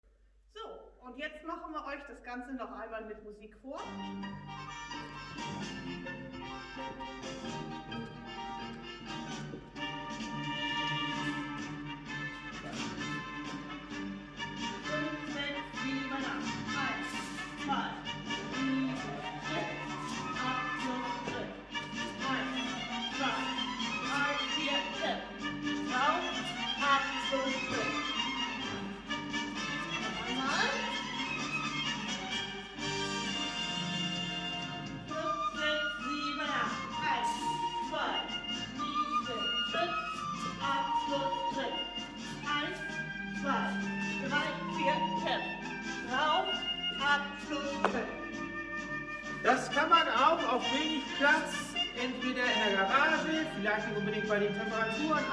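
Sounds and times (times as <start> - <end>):
tango music: 3.8 - 55.3.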